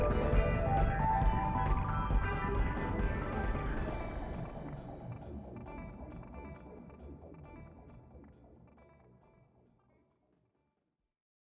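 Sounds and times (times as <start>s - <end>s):
background music: 0.0s - 9.0s.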